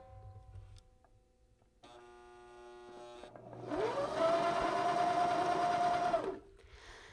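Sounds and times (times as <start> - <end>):
sewing machine motor hesitating, revving up: 3.0 - 6.4.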